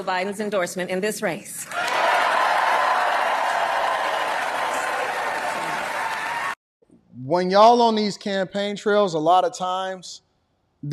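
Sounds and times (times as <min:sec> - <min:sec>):
speech: 0:00.0 - 0:02.1, 0:07.2 - 0:10.2
audience applause: 0:01.7 - 0:06.6.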